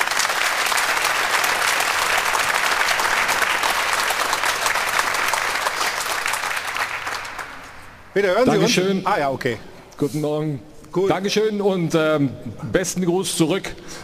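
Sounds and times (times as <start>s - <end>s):
audience applause: 0.0s - 8.0s
speech: 8.2s - 14.0s.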